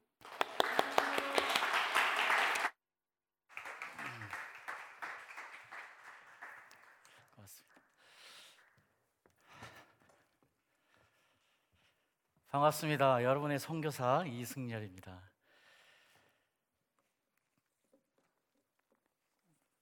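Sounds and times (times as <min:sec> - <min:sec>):
audience applause: 0:00.2 - 0:02.7, 0:03.5 - 0:07.3
speech: 0:12.5 - 0:15.3.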